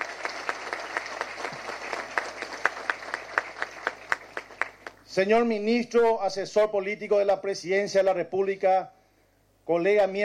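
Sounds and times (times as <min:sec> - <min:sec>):
crowd applauding: 0:00.0 - 0:05.0
speech: 0:05.2 - 0:09.0, 0:09.7 - 0:10.2.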